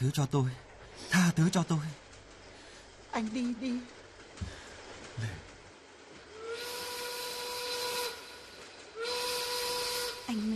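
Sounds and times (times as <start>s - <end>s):
speech: 0.0s - 2.0s, 3.2s - 4.6s, 5.2s - 5.5s
train whistle as a train is about to depart: 6.3s - 10.5s.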